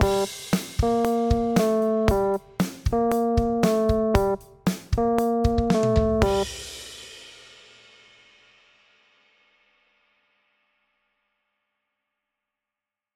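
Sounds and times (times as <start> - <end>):
instrumental music: 0.0 - 7.1.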